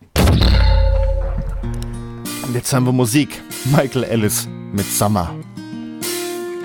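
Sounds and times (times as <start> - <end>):
Christmas tree cannon firing: 0.1 - 2.2
speech: 2.5 - 5.5.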